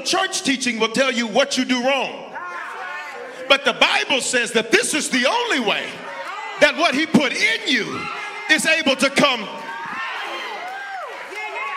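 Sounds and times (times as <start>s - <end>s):
speech: 0.0s - 2.3s, 3.5s - 9.6s
audience shouting: 6.0s - 11.7s.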